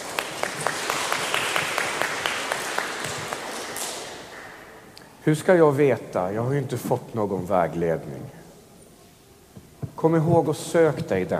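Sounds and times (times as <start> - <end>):
audience applause: 0.0 - 4.8
speech: 5.2 - 8.4, 10.0 - 11.3.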